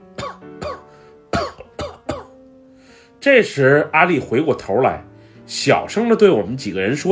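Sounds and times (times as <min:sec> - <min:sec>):
elderly person coughing hoarsely: 0:00.2 - 0:02.4
speech: 0:03.2 - 0:07.1.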